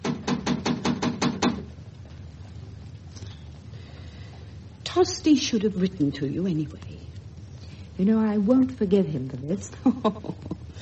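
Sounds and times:
knocking on a door: 0.0s - 1.7s
speech: 5.0s - 7.1s, 8.0s - 10.6s.

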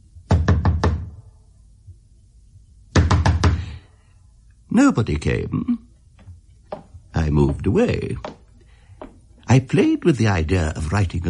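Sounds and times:
vigorous knocking on a door: 0.3s - 1.2s, 2.9s - 3.6s, 6.7s - 8.4s
speech: 4.8s - 5.8s, 7.2s - 8.4s, 9.5s - 11.2s.

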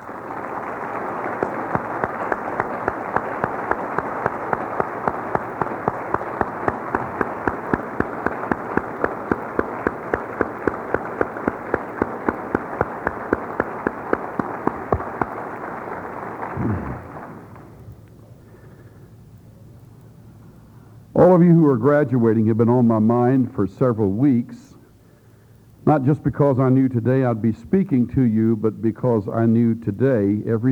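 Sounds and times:
large crowd applauding: 0.0s - 18.0s
speech: 21.3s - 24.7s, 25.9s - 30.7s.

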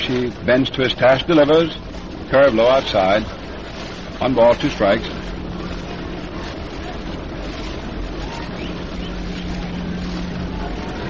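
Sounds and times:
subway train rumbling past: 0.0s - 11.0s
speech: 0.1s - 3.4s, 4.2s - 5.2s.

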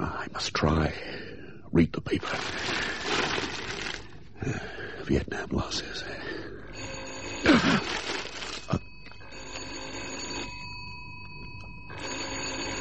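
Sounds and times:
speech: 0.0s - 2.9s, 4.4s - 6.2s, 7.4s - 8.0s
old-fashioned telephone bell ringing: 6.7s - 12.7s.

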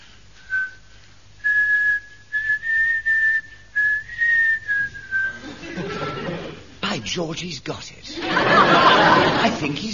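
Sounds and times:
person whistling a catchy tune: 0.4s - 5.4s
laughter: 5.3s - 6.8s, 8.1s - 9.9s
speech: 7.1s - 9.9s.

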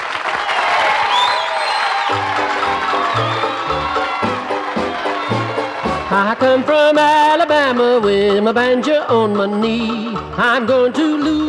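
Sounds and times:
audience applause and cheering: 0.0s - 7.8s
speech: 6.2s - 11.4s.

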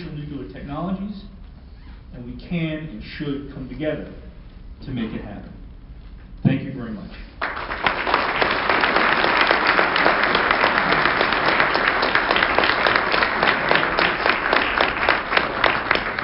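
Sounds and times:
speech: 0.6s - 1.4s, 2.2s - 4.2s, 4.8s - 5.6s, 6.4s - 7.5s
audience applause after a speech: 7.4s - 16.2s.

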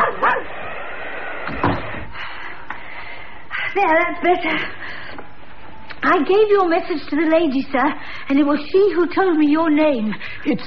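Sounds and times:
dog barking: 0.0s - 0.6s
speech: 3.8s - 5.0s, 6.0s - 10.6s.

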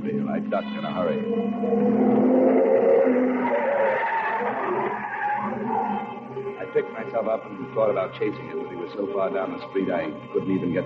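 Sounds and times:
speech: 0.3s - 2.2s, 6.8s - 10.8s
tires screeching: 1.2s - 7.6s.

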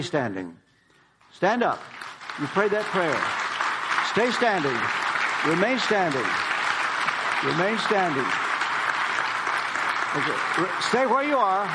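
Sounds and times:
speech: 0.0s - 0.6s, 1.3s - 3.4s, 4.2s - 6.5s, 7.4s - 8.4s, 10.1s - 11.7s
audience clapping: 1.3s - 11.7s.

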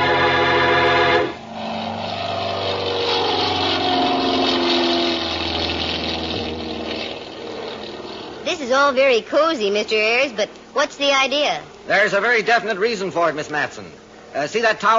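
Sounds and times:
small airplane engine revving for takeoff: 0.0s - 8.8s
speech: 8.7s - 14.9s.

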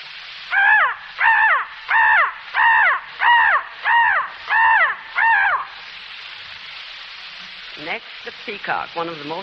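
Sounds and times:
crow cawing: 0.5s - 5.8s
speech: 8.0s - 9.4s.

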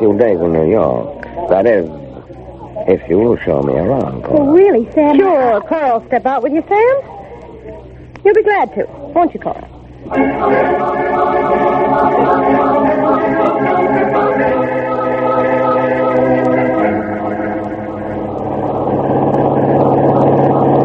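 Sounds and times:
speech: 0.0s - 2.0s, 2.8s - 7.1s, 8.2s - 12.8s
car engine droning while driving: 9.9s - 20.8s.

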